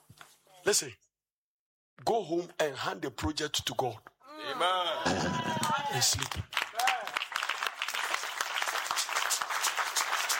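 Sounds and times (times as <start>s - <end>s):
speech: 0.6s - 1.0s, 2.0s - 6.6s
crowd applauding: 5.1s - 10.3s.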